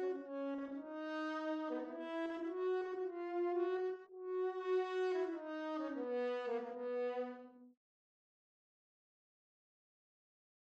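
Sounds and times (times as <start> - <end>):
horn: 0.0 - 7.7.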